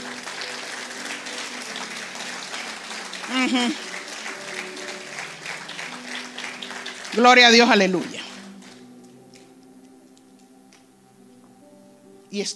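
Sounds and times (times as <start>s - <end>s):
audience applause: 0.0s - 8.9s
speech: 3.4s - 3.9s, 7.2s - 8.2s, 12.4s - 12.5s.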